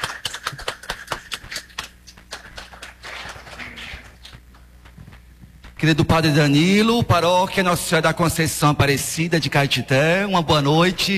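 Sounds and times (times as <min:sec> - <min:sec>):
applause: 0:00.0 - 0:04.1
speech: 0:05.8 - 0:11.1.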